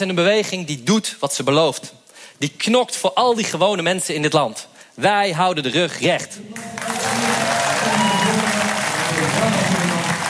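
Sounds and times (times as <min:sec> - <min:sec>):
speech: 0:00.0 - 0:06.7
crowd applause: 0:06.6 - 0:10.2.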